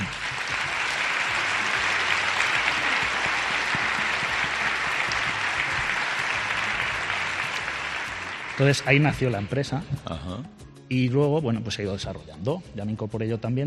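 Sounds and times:
audience applause: 0:00.0 - 0:09.5
speech: 0:08.6 - 0:13.6.

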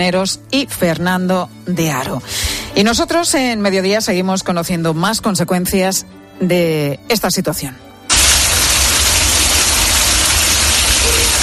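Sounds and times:
speech: 0:00.0 - 0:07.9
milk gushing from an open tap on a storage tank: 0:08.1 - 0:11.4.

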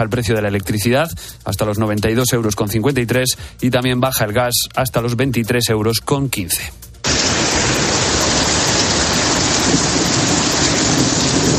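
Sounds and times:
speech: 0:00.0 - 0:07.4
thunder: 0:07.0 - 0:11.5
torrential downpour in Madrid: 0:07.0 - 0:11.5.

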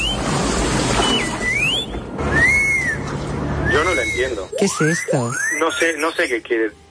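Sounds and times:
high whistled phrases gliding up and down in pitch: 0:01.0 - 0:06.5
speech: 0:04.2 - 0:06.8.

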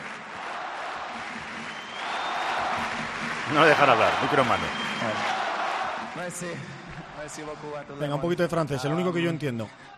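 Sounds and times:
stadium crowd cheering and shouting: 0:00.0 - 0:07.7
speech: 0:03.5 - 0:05.3, 0:06.2 - 0:09.9.

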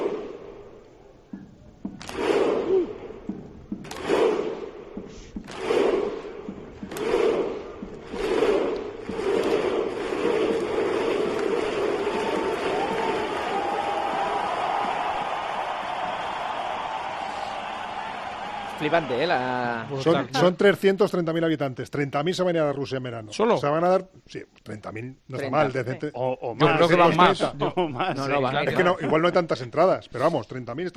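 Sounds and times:
Icelandic football fans chanting: 0:03.9 - 0:04.8, 0:05.4 - 0:20.0
speech: 0:18.8 - 0:30.9.

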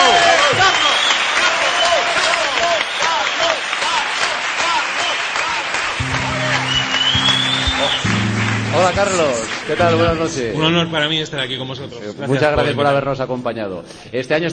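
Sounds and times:
audience applause: 0:00.0 - 0:10.6
speech: 0:09.2 - 0:14.5.

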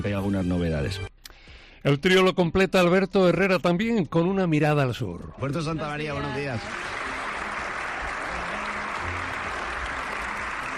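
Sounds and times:
speech: 0:00.0 - 0:01.1, 0:01.8 - 0:06.9
live audience applauding at an early-morning show: 0:06.0 - 0:10.7.

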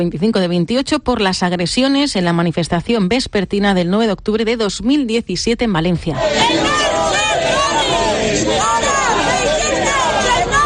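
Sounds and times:
speech: 0:00.0 - 0:06.8
crowd booing and shouting: 0:06.2 - 0:10.6.

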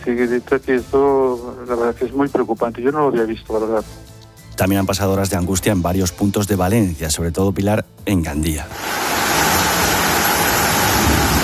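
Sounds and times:
speech: 0:00.0 - 0:09.0
torrential heavy rain falling: 0:08.8 - 0:11.4.

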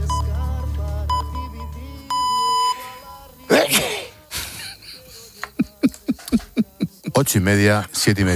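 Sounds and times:
electronic radio time-signal pips: 0:00.0 - 0:03.2
loud sneeze: 0:03.5 - 0:04.6
laughter: 0:03.5 - 0:07.4
speech: 0:07.2 - 0:08.3.

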